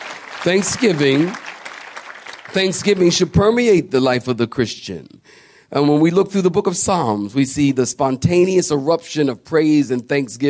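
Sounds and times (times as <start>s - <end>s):
audience clapping: 0.0s - 3.4s
speech: 0.4s - 1.4s, 2.5s - 10.4s.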